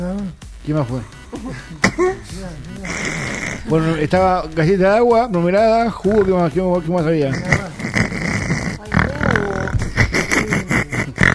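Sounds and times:
speech: 0:00.0 - 0:07.7
laughter: 0:01.2 - 0:11.3
person imitating a pig's oink: 0:01.8 - 0:04.6, 0:06.0 - 0:06.4, 0:07.2 - 0:11.3.

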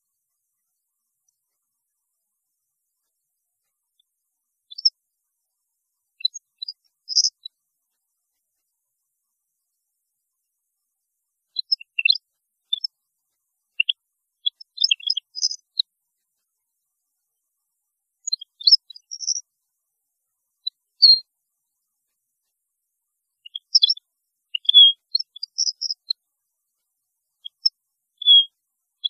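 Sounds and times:
goldfinch twittering song: 0:04.7 - 0:04.9, 0:06.2 - 0:07.5, 0:11.6 - 0:12.9, 0:13.8 - 0:15.6, 0:18.3 - 0:19.4, 0:23.4 - 0:24.0, 0:24.6 - 0:26.0, 0:27.4 - 0:29.0.

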